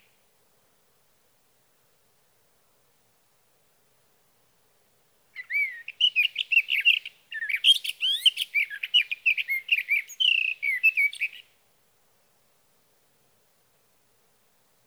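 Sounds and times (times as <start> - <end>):
Sage Thrasher singing through the night: 5.4 - 11.5.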